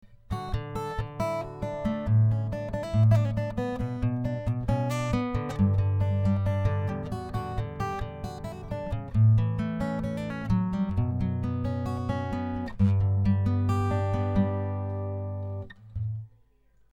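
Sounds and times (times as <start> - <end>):
guitar: 0.0 - 16.9.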